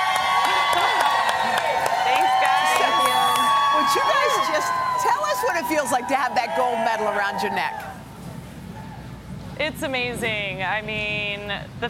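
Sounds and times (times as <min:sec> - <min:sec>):
plaza crowd clapping and cheering: 0:00.0 - 0:08.0
speech: 0:03.9 - 0:07.9, 0:09.6 - 0:11.8.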